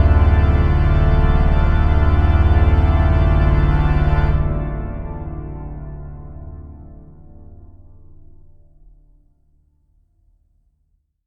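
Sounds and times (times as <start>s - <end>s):
organ fugue: 0.0s - 6.1s.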